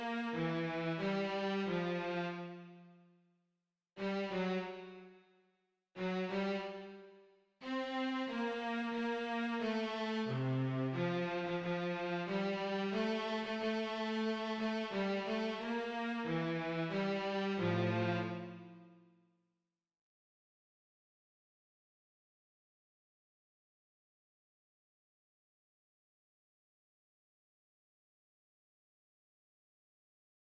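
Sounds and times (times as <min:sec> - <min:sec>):
cello part: 0:00.0 - 0:02.7, 0:04.0 - 0:05.1, 0:06.0 - 0:07.0, 0:07.8 - 0:18.8.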